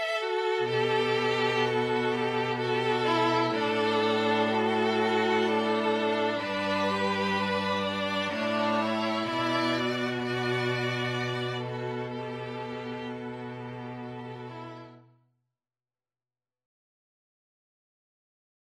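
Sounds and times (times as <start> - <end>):
musical trio: 0.2 - 15.0.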